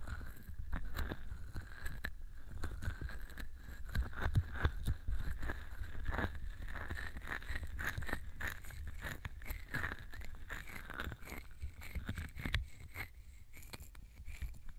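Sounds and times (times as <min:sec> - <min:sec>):
ear massage sounds on both ears: 0:00.0 - 0:14.7.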